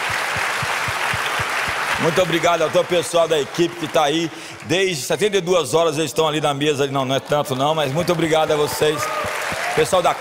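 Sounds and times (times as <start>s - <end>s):
dense steady clapping from a group: 0.0s - 5.0s, 7.3s - 10.1s
speech: 2.0s - 10.1s.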